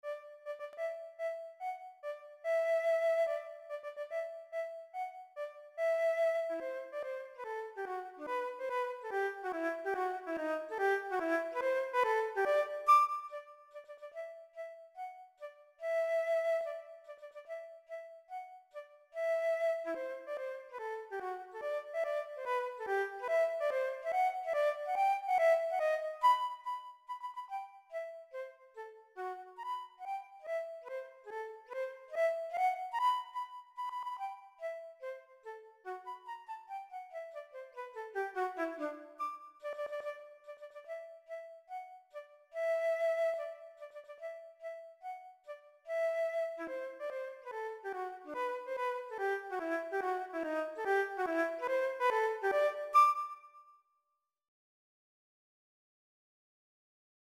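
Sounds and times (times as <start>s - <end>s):
flute: 0.0s - 53.8s.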